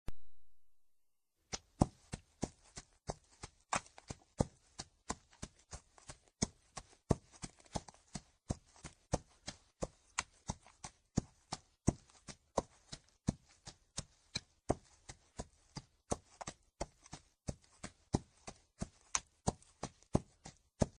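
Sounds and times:
horse trotting on grass: 1.5 - 20.9.

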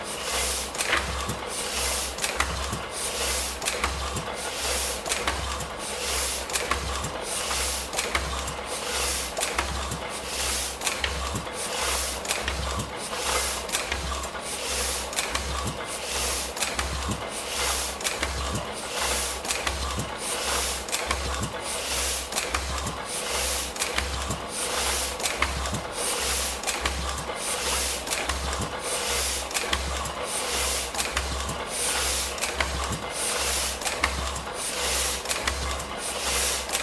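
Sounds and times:
printing press machine: 0.0 - 36.8.

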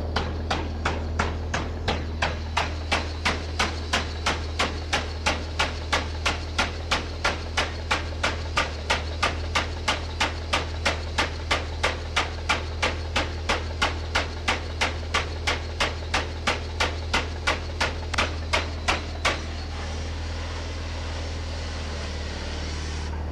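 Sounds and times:
rotary hammer drilling: 0.2 - 23.2.

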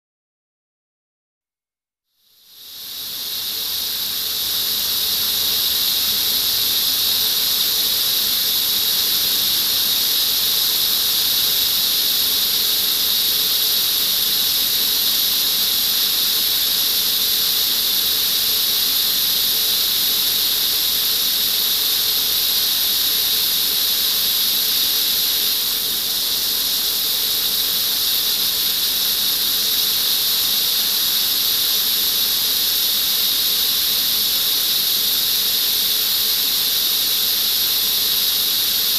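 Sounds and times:
jet of steam: 2.4 - 38.9.

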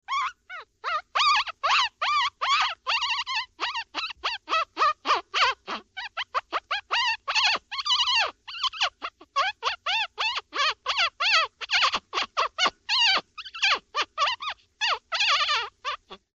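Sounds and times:
person imitating a puppy whining plaintively: 0.1 - 16.3.

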